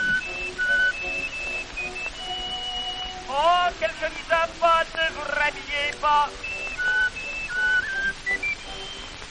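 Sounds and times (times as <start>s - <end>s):
whistled imitation of a nightingale's song: 0.0s - 3.6s, 6.4s - 9.2s
speech: 3.8s - 6.5s.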